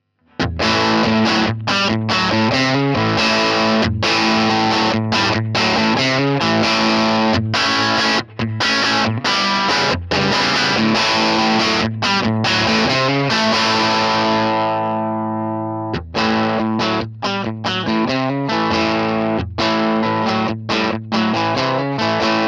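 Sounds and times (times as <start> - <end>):
Strat electric guitar with gain: 0.2 - 22.4.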